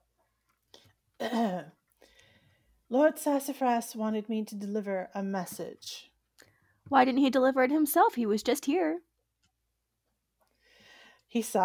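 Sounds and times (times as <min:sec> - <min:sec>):
speech: 0:01.2 - 0:01.8, 0:02.9 - 0:06.1, 0:06.9 - 0:09.1, 0:11.3 - 0:11.6
voice actor clearing throat for a raccoon character: 0:01.2 - 0:01.8.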